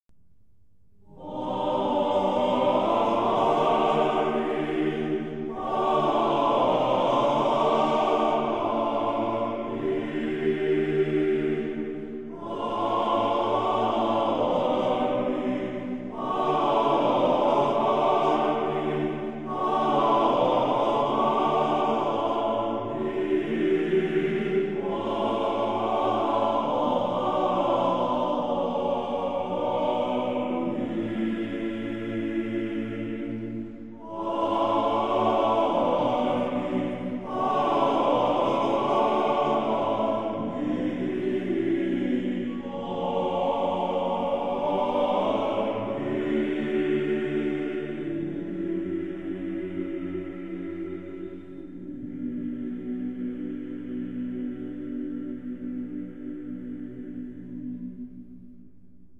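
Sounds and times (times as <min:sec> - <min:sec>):
choir singing amen before a hymn: 0:01.1 - 0:57.9.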